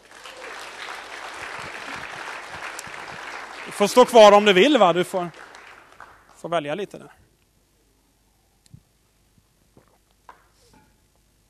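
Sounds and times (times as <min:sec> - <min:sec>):
audience applause: 0:00.0 - 0:06.9
speech: 0:03.8 - 0:05.4, 0:06.4 - 0:07.2.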